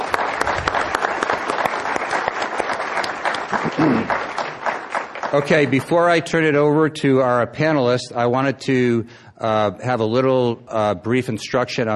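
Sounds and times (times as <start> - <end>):
audience applause: 0.0 - 6.2
speech: 5.3 - 11.9.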